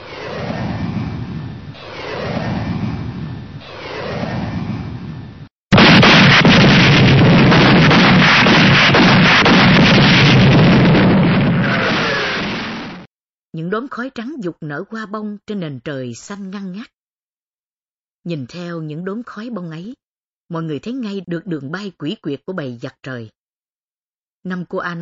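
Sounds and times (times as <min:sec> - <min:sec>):
anti-aircraft gunfire: 0:00.0 - 0:13.1
anti-aircraft shells exploding: 0:05.7 - 0:13.1
speech: 0:13.7 - 0:17.0, 0:18.2 - 0:23.4, 0:24.4 - 0:25.0.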